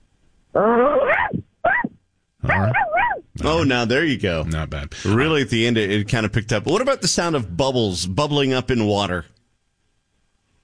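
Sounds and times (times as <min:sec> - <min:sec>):
speech: 0:00.6 - 0:01.1, 0:03.5 - 0:09.4
person vocally imitating dog barks: 0:00.6 - 0:03.3.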